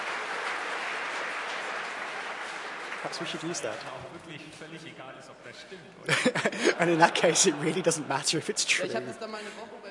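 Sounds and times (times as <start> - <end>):
applause from a conference hall crowd: 0.0 - 4.0
speech: 3.0 - 9.8
laughter: 6.0 - 8.6.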